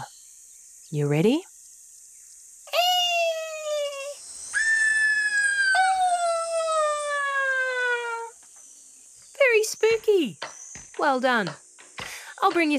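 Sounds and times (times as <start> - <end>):
speech: 0.9 - 1.5, 10.0 - 11.6, 12.4 - 12.7
voice imitating a greater sooty owl call: 2.7 - 8.3.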